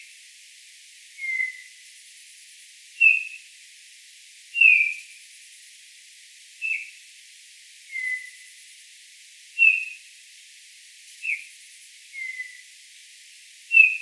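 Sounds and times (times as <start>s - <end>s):
Eurasian bullfinch Pyrrhula pyrrhula piping calls: 1.2s - 1.6s, 3.0s - 3.3s, 7.9s - 8.3s, 9.6s - 9.9s, 12.2s - 12.6s, 13.7s - 14.0s.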